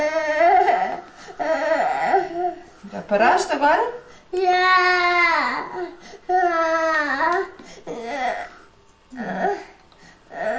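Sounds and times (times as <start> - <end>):
small child crying: 0.0 - 2.6, 4.4 - 8.6, 10.3 - 10.5
speech: 3.0 - 8.5, 9.1 - 9.7.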